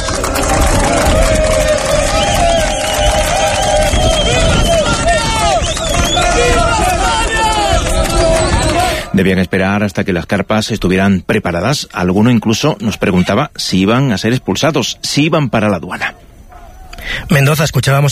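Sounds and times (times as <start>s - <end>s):
crowd shouting at the gates: 0.0s - 9.4s
speech: 9.2s - 16.2s, 17.0s - 18.1s.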